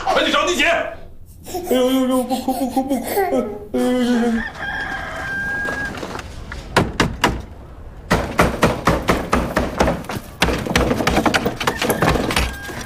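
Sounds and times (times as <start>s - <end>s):
speech: 0.1s - 4.7s
person pounding hard on a door: 6.7s - 7.4s, 8.1s - 12.4s.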